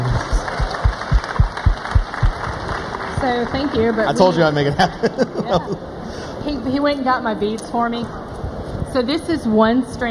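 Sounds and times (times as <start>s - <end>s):
audience applause: 0.0s - 4.8s
speech: 3.2s - 8.2s, 8.9s - 10.0s
laughter: 4.5s - 5.9s.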